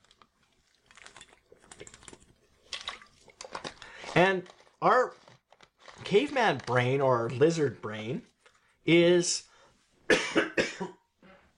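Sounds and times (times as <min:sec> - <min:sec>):
person sipping water: 0:00.0 - 0:06.0
speech: 0:04.1 - 0:05.2, 0:06.1 - 0:09.5.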